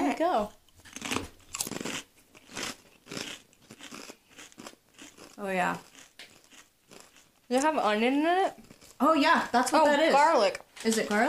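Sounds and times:
speech: 0:00.2 - 0:00.6, 0:05.4 - 0:05.9, 0:07.5 - 0:11.2
biting and chewing a thick kettle chip: 0:00.8 - 0:07.5.

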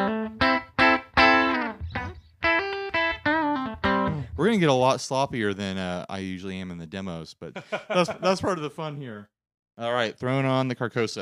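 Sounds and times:
clean electric guitar tone before the pedals: 0:00.0 - 0:04.5
speech: 0:04.4 - 0:11.2
laughter: 0:07.5 - 0:08.6.

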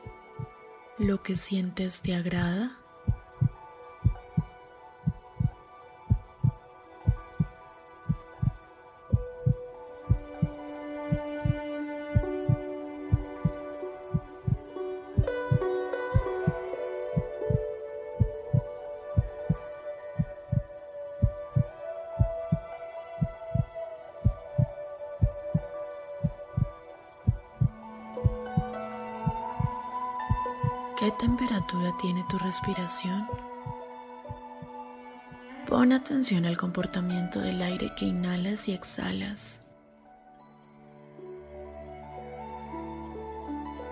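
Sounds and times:
speech: 0:01.0 - 0:02.8, 0:32.0 - 0:33.5, 0:35.8 - 0:39.6
heartbeat: 0:03.1 - 0:11.6, 0:12.2 - 0:14.6, 0:15.2 - 0:15.6, 0:16.2 - 0:31.8.

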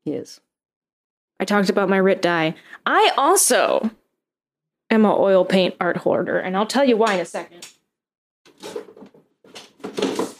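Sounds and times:
speech: 0:00.1 - 0:00.5, 0:01.4 - 0:04.0, 0:04.9 - 0:07.8
large drawer being pulled out: 0:08.5 - 0:10.3.

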